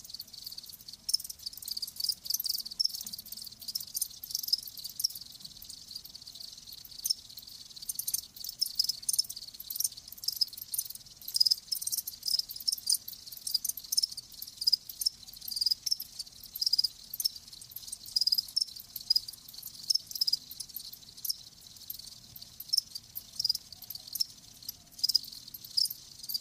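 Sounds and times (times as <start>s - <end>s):
crickets chirping: 0.0s - 26.3s.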